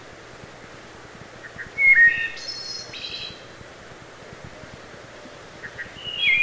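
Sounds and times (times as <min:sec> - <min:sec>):
low hiss: 0:00.0 - 0:06.4
wood thrush fluted song with ringing trill: 0:01.4 - 0:03.5, 0:05.6 - 0:06.4.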